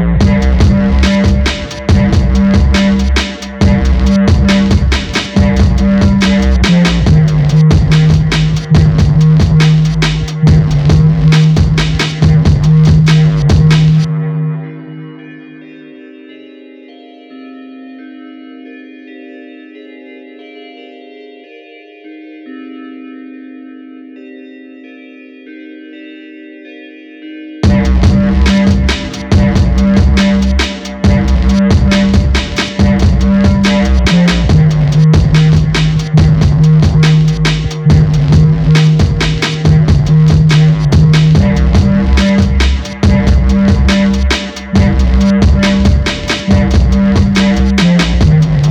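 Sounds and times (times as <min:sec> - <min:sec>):
beat at 140 bpm: 0:00.2 - 0:14.3, 0:27.6 - 0:48.6.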